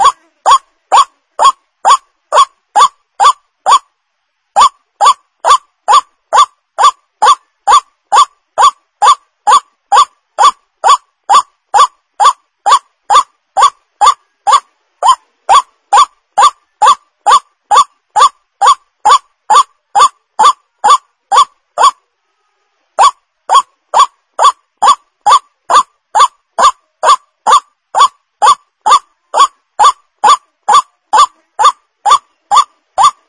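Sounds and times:
white-breasted waterhen lure call: 0.0s - 3.9s, 4.6s - 22.0s, 23.0s - 33.2s.

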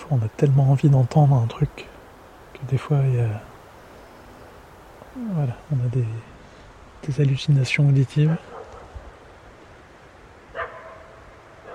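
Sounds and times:
speech: 0.1s - 1.9s, 2.6s - 3.5s, 5.2s - 6.3s, 7.0s - 8.5s
dog barking: 8.4s - 9.1s, 10.5s - 11.7s.

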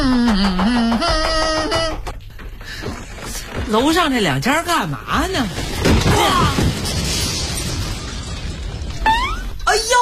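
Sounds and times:
balcony collapsing and falling: 0.7s - 9.9s
speech: 3.7s - 5.6s.

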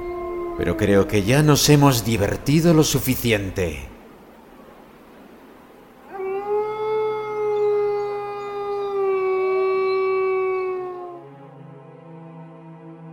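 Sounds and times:
wild wolves howling: 0.0s - 2.6s, 6.0s - 11.5s
speech: 0.6s - 3.9s.

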